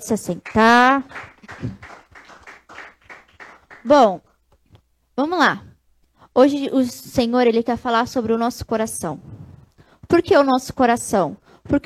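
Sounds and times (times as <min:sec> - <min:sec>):
speech: 0:00.0 - 0:02.0, 0:03.8 - 0:04.3, 0:05.2 - 0:05.7, 0:06.4 - 0:09.4, 0:10.1 - 0:11.8
audience applause: 0:00.4 - 0:03.9.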